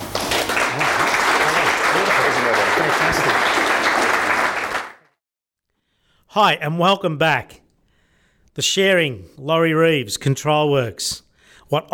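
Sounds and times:
crowd clapping: 0:00.0 - 0:05.2
speech: 0:06.4 - 0:07.6, 0:08.6 - 0:11.9.

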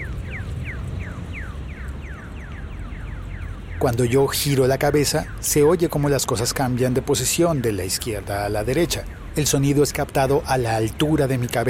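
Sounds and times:
bird-like pedestrian crossing signal: 0:00.0 - 0:11.6
speech: 0:03.8 - 0:11.6.

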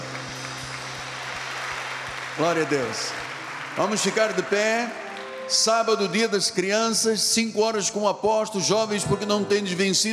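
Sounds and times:
audience applauding: 0:00.0 - 0:06.3
speech: 0:02.4 - 0:10.1.

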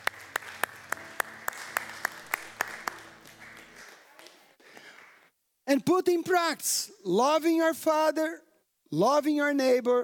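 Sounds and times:
audience applauding: 0:00.0 - 0:05.3
speech: 0:05.7 - 0:10.0.

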